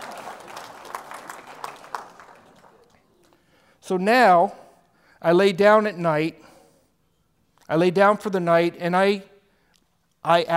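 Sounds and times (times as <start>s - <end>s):
hands clapping: 0.0s - 3.6s
speech: 3.9s - 4.6s, 5.2s - 6.5s, 7.7s - 9.3s, 10.2s - 10.5s.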